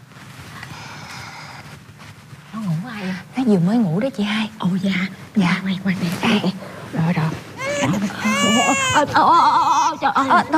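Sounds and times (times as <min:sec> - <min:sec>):
speech: 0:02.5 - 0:07.4, 0:08.6 - 0:10.5
baby crying while held by an unfamiliar person after just waking: 0:07.6 - 0:10.5.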